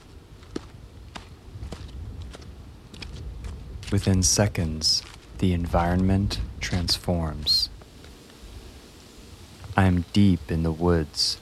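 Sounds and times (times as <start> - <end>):
footsteps descending stone steps into a valley: 0.0 - 4.4, 5.0 - 7.1
low outdoor rumble: 0.0 - 11.4
speech: 3.9 - 7.7, 9.8 - 11.4.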